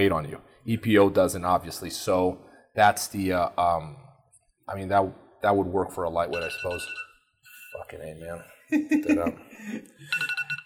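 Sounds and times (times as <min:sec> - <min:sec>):
speech: 0:00.0 - 0:04.0, 0:04.7 - 0:07.1, 0:07.8 - 0:10.4
alarm going off: 0:06.3 - 0:08.0, 0:10.0 - 0:10.6.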